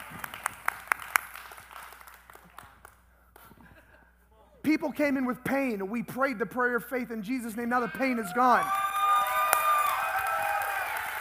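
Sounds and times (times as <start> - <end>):
audience golf clapping: 0.0 - 3.6, 8.6 - 11.1
speech: 4.7 - 8.8.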